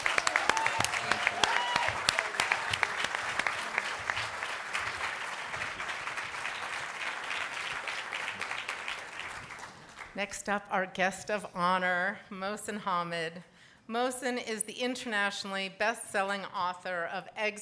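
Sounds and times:
audience clapping: 0.0 - 10.2
speech: 10.2 - 17.6.

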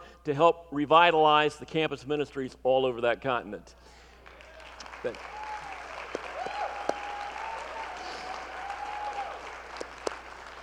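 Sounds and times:
speech: 0.2 - 4.0, 5.0 - 5.4
audience clapping: 4.2 - 10.6.

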